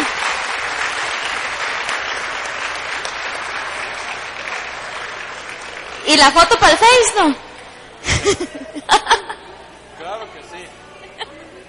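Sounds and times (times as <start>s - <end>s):
audience applause: 0.0s - 7.3s
speech: 6.1s - 7.4s, 8.2s - 9.1s
laughter: 8.0s - 9.8s, 10.9s - 11.6s.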